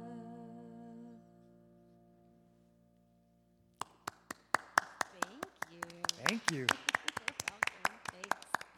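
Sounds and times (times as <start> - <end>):
loud hand clapping: 3.8 - 8.7
speech: 6.5 - 6.9.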